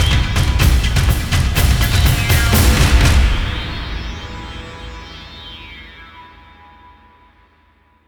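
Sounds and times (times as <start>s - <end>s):
drums: 0.0s - 5.6s.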